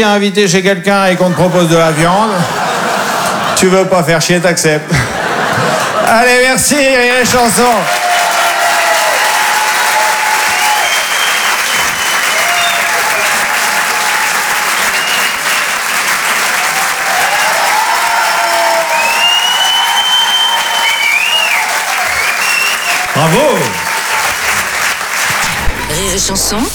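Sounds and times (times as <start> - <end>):
speech: 0.0 - 2.6, 3.6 - 5.2, 6.1 - 8.0, 26.3 - 26.7
laughter: 1.0 - 8.0, 22.8 - 26.7
audience applause: 5.1 - 26.7
cheers and whistles: 7.3 - 26.0.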